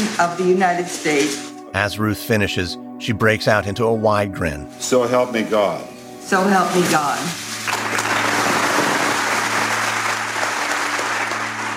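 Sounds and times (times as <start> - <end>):
speech: 0.2 - 7.4
crowd applause: 7.7 - 11.7.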